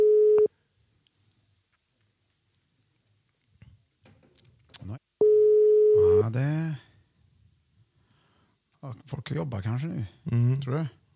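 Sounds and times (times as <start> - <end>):
telephone ringback tone: 0.0 - 0.5, 5.2 - 6.0
speech: 6.3 - 6.8, 8.9 - 11.1.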